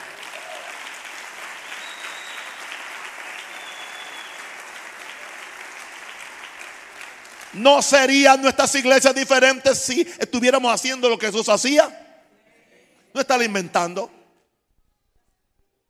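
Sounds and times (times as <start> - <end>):
loud audience applause: 0.0 - 8.5
speech: 7.5 - 12.0, 13.3 - 14.2.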